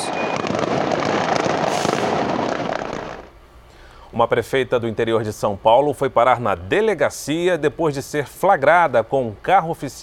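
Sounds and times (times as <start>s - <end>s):
fireworks set off by residents: 0.0s - 3.4s
speech: 4.2s - 10.0s.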